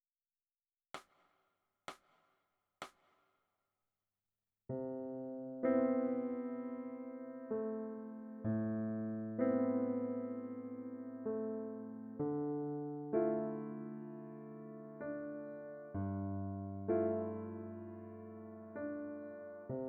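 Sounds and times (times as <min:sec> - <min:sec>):
piano: 0:04.7 - 0:19.8.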